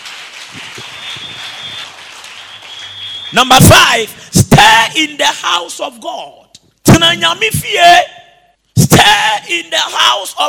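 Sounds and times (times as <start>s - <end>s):
audience clapping: 0.0s - 3.9s
speech: 3.3s - 6.4s, 7.0s - 8.2s, 9.0s - 10.4s.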